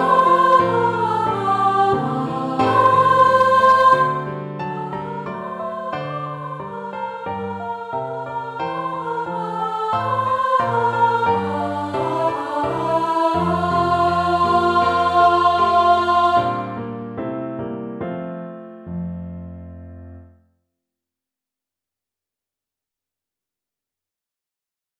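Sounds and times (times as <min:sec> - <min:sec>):
solo voice singing in F major: 0:00.0 - 0:16.8
piano in F major: 0:00.0 - 0:20.4.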